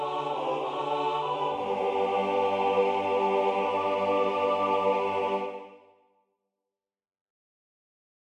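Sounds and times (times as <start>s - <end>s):
tutti choir singing a South African song: 0.0s - 6.0s.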